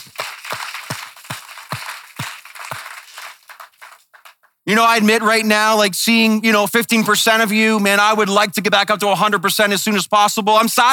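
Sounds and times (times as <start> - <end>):
crowd applauding: 0.0 - 4.5
speech: 4.7 - 10.9.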